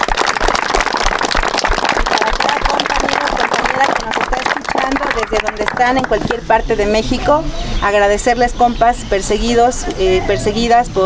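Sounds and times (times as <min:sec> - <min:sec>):
audience applause: 0:00.0 - 0:06.4
speech: 0:05.4 - 0:11.0.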